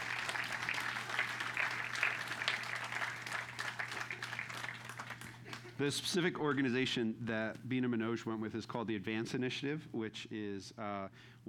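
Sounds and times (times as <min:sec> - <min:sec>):
audience applause: 0:00.0 - 0:05.8
faint low electrical hum: 0:00.0 - 0:11.4
speech: 0:05.8 - 0:11.4.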